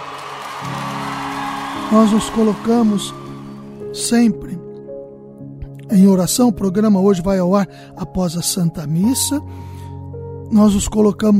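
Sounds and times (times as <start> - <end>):
applause: 0.0 - 3.8
speech: 1.9 - 3.2, 4.0 - 4.6, 5.9 - 9.8, 10.5 - 11.3.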